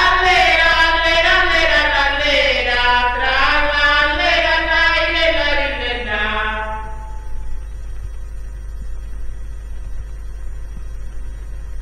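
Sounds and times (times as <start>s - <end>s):
polyphonic singing of mutettus a trallalero in Serramanna: 0.0s - 7.3s.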